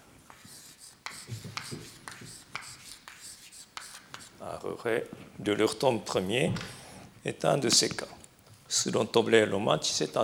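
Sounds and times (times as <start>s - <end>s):
word being written out by hand: 0.3s - 4.4s
speech: 4.5s - 10.2s.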